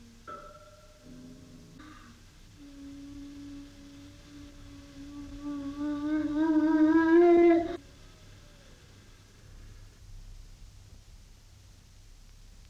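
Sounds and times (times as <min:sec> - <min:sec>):
etude for pianoforte: 0:00.0 - 0:07.8.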